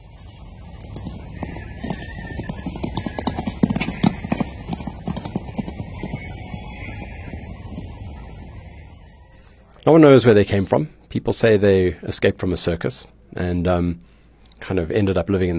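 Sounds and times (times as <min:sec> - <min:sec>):
wild horses' hooves clip-clopping: 0:00.0 - 0:08.8
low outdoor rumble: 0:00.0 - 0:15.5
wild horses whinnying: 0:00.8 - 0:08.3
speech: 0:09.9 - 0:15.5.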